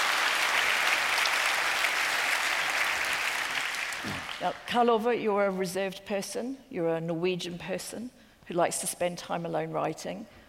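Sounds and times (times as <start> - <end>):
audience in Auckland applauding to welcome a Norwegian author: 0.0 - 4.4
speech: 4.0 - 10.4.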